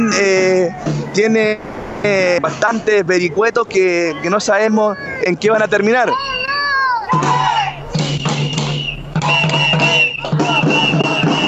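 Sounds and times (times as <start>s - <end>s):
protesting teachers shouting slogans: 0.0s - 1.2s, 4.0s - 8.6s, 9.2s - 11.4s
speech: 0.1s - 6.4s.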